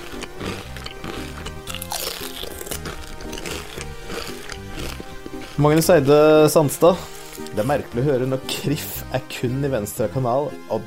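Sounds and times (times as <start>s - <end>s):
person crunching chips: 0.0s - 7.7s
music or tones: 0.0s - 10.8s
speech: 5.6s - 10.8s.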